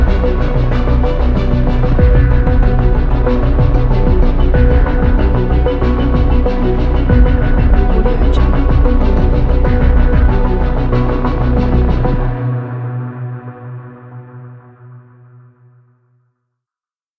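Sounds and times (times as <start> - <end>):
tension music: 0.0 - 12.4.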